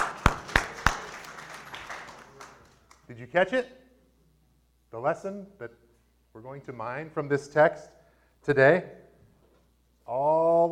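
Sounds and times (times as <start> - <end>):
audience clapping: 0.0 - 3.0
speech: 3.1 - 3.8, 4.9 - 9.0, 10.1 - 10.6.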